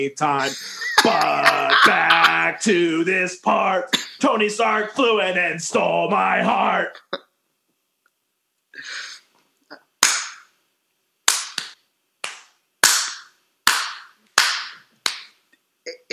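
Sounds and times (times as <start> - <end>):
speech: 0.0 - 7.2
laughter: 0.4 - 2.7, 6.8 - 7.2
slow clap: 10.0 - 10.5, 11.3 - 15.4.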